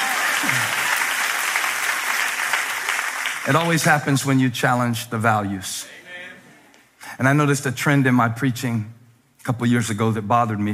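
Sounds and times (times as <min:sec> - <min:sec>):
audience applause: 0:00.0 - 0:04.2
speech: 0:03.4 - 0:06.0, 0:07.2 - 0:10.7.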